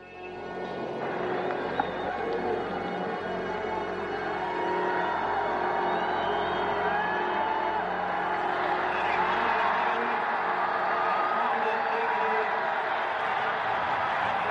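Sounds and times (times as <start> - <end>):
roomful of people cheering and applauding in mission control: 0.0 - 14.5
shouts and whoops: 4.0 - 14.5.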